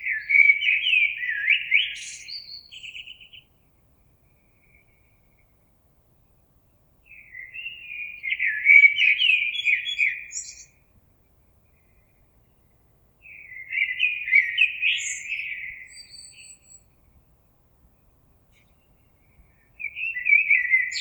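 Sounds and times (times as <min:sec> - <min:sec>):
common blackbird singing fluty phrases: 0:00.0 - 0:03.6, 0:07.0 - 0:10.8, 0:11.7 - 0:17.0, 0:18.5 - 0:20.9.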